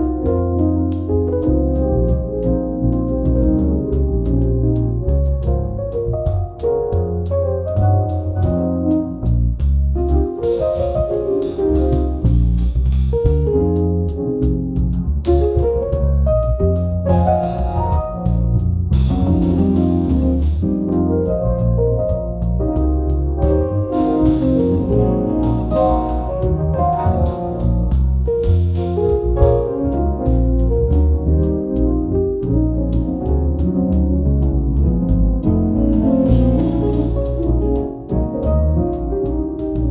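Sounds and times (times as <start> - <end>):
jazz background track with melodies: 0.0 - 39.8.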